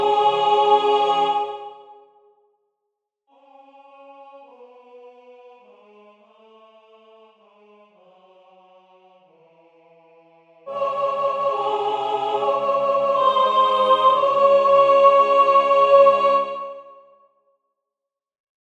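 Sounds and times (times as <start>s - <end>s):
alto voice singing: 0.0s - 2.0s, 10.7s - 17.0s.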